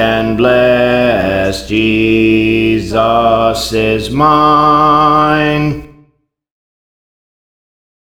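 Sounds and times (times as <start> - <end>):
bass: 0.0 - 5.8.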